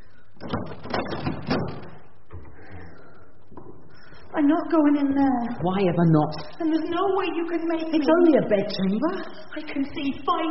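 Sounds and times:
door opening: 0.4s - 2.6s
speech: 4.4s - 10.5s.

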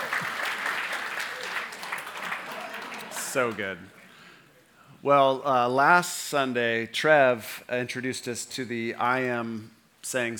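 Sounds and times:
audience applause: 0.0s - 3.6s
speech: 3.3s - 4.0s, 5.0s - 10.3s.

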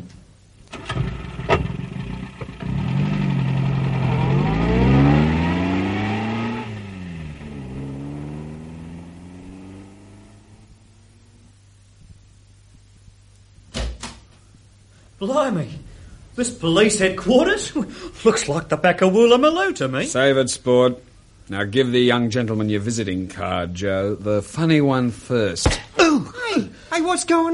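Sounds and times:
car engine starting and driving off: 0.7s - 11.5s
speech: 15.2s - 15.8s, 16.4s - 27.5s.

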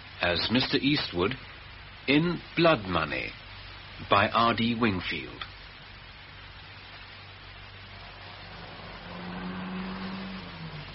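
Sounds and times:
speech: 0.2s - 3.4s, 4.0s - 5.5s
car passing outside: 7.8s - 10.9s.

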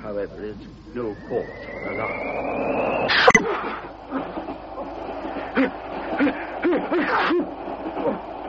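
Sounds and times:
speech: 0.1s - 4.4s, 5.6s - 8.2s
person sneezing: 5.4s - 7.5s.

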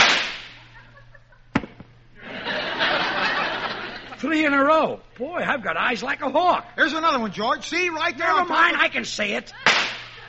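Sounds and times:
steady hiss: 0.0s - 10.2s
laughter: 0.6s - 1.5s, 2.2s - 4.3s, 9.5s - 10.2s
speech: 4.3s - 9.7s
gunshots: 9.7s - 10.2s.

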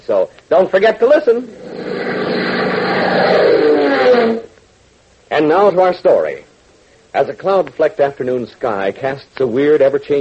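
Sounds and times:
speech: 0.0s - 2.1s, 5.3s - 6.5s, 7.1s - 10.2s
Beechcraft biplane engine drumming smoothly: 1.4s - 4.6s.

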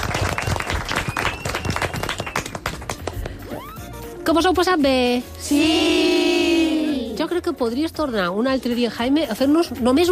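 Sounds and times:
applause: 0.0s - 3.3s
speech: 4.3s - 6.0s, 7.3s - 10.1s.

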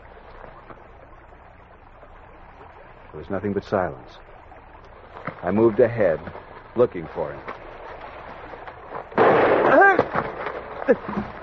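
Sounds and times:
speech: 3.1s - 4.3s, 5.4s - 7.6s, 10.9s - 11.4s
gunshot: 9.2s - 10.3s.

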